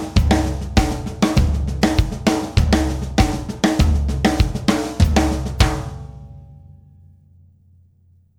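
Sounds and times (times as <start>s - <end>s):
samba reggae music: 0.0s - 5.6s.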